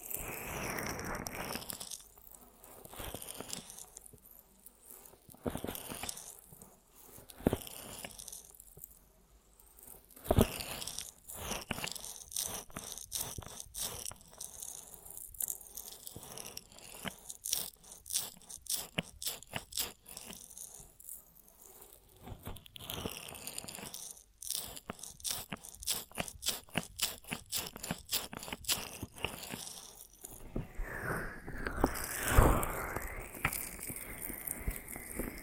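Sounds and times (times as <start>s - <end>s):
crinkly crunching and scratching ear massage triggers: 0.0s - 9.0s, 9.8s - 35.4s
bright swishing sweep: 30.7s - 33.4s.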